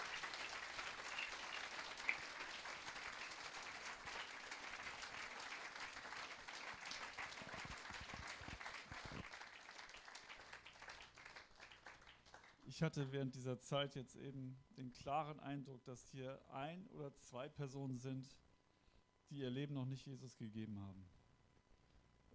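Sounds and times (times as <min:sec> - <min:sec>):
audience applause after a church speaker's introduction: 0:00.0 - 0:12.6
speech: 0:12.8 - 0:18.4, 0:19.3 - 0:21.2.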